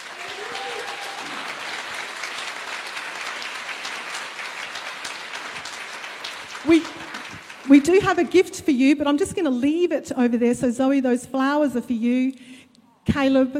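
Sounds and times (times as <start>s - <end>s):
audience applause: 0.0s - 8.4s
speech: 6.6s - 7.0s, 7.7s - 13.5s.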